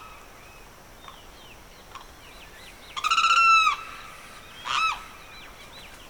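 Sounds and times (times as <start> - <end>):
evening birdsong in the Pantanal swamp in rural South America: 1.0 - 6.0.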